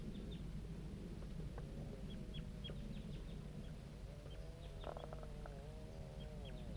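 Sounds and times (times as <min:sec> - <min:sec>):
juvenile birds calling: 0:00.0 - 0:00.6, 0:01.2 - 0:06.7
wavering, lower warbled juvenile bird calls: 0:01.9 - 0:06.7.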